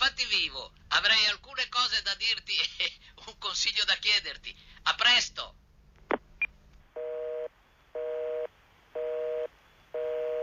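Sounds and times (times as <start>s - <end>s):
speech: 0.2s - 6.2s
telephone busy tone after call ends: 7.0s - 10.4s.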